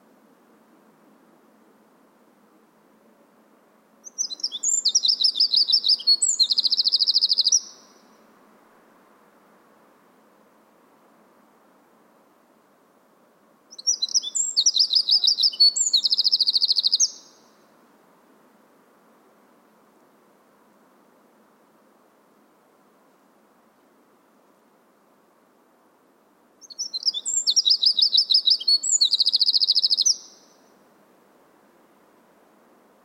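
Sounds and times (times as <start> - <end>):
quiet background hiss: 0.0 - 33.0
Eurasian wren rattling trill song: 4.0 - 8.0, 13.7 - 17.5, 26.6 - 30.6.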